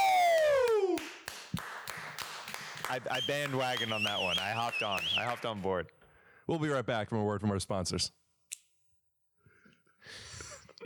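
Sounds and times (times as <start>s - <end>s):
people clapping: 0.0s - 5.9s
speech: 2.9s - 8.2s, 10.0s - 10.3s.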